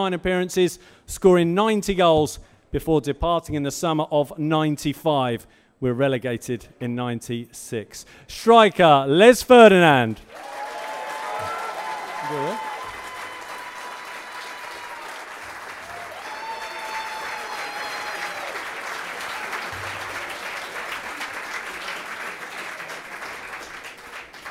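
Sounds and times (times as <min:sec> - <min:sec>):
speech: 0:00.0 - 0:10.6, 0:12.3 - 0:12.7
round of applause from a crowd: 0:10.3 - 0:24.4.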